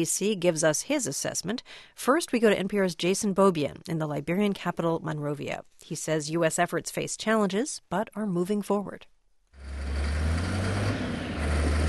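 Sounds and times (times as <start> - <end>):
speech: 0.0 - 9.1
yellow earth mover engine droning near Monrovia airport: 9.6 - 11.8.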